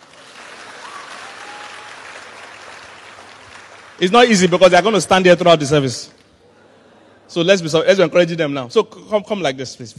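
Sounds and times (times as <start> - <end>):
audience clapping: 0.0 - 5.4
speech: 4.0 - 6.2, 7.3 - 9.9.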